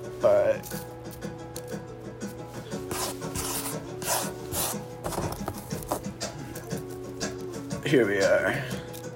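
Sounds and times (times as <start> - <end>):
speech: 0.2 - 0.9, 7.9 - 8.8
rolling weed into rolling paper: 2.8 - 6.1.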